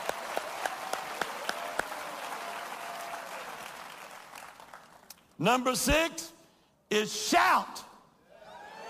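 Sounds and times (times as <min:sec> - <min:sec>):
crowd of people clapping their hands: 0:00.0 - 0:05.4
speech: 0:05.4 - 0:07.8.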